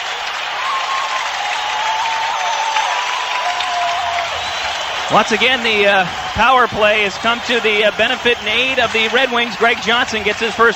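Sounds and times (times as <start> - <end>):
hockey arena crowd cheering and applauding: 0.0 - 10.7
faint whistling: 4.2 - 5.3
speech: 5.1 - 10.7.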